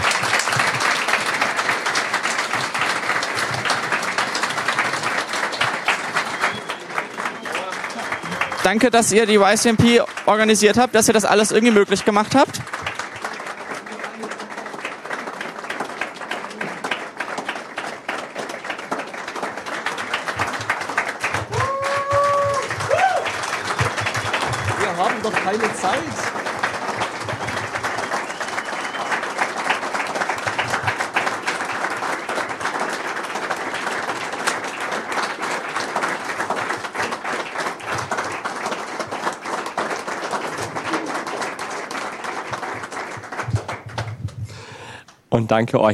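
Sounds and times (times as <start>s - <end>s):
audience applause: 0.0s - 45.0s
whistles and cheers: 6.1s - 8.7s, 21.5s - 23.5s, 27.4s - 29.7s
speech: 8.7s - 12.6s, 45.5s - 45.9s.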